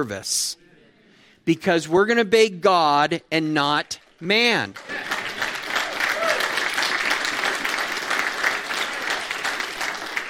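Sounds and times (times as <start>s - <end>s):
speech: 0.0s - 0.6s, 1.4s - 5.1s
audience clapping: 3.6s - 10.2s.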